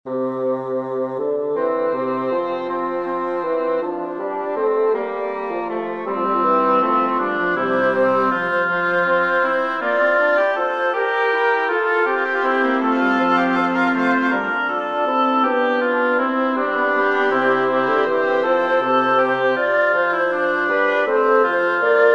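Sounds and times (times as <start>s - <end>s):
woodwind quartet playing a canzona: 0.1s - 22.1s.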